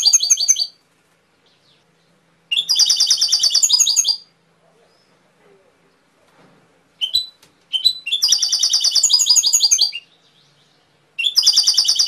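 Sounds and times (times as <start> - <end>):
canary singing trilled phrases: 0.0 - 0.8, 2.5 - 4.3, 7.0 - 12.0.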